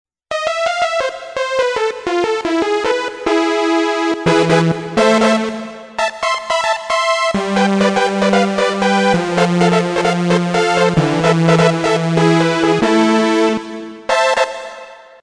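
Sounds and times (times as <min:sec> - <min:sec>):
brass instruments: 0:00.6 - 0:15.0.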